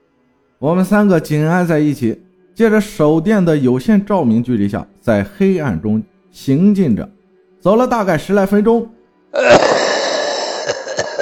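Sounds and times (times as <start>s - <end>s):
speech: 0.6s - 9.7s
old man coughing: 9.4s - 11.2s.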